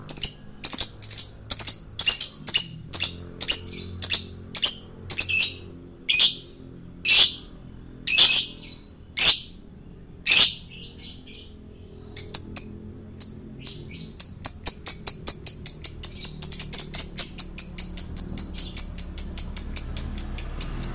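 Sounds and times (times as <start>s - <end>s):
male lovebird shrieking, chirping and screeching: 0.1s - 6.5s, 7.1s - 7.5s, 8.1s - 9.6s, 10.3s - 20.9s.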